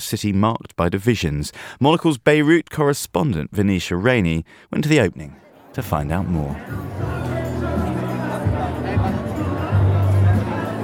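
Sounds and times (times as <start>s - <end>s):
speech: 0.0s - 7.3s
crowd chatter at the Sursock Museum reopening night: 5.3s - 10.8s.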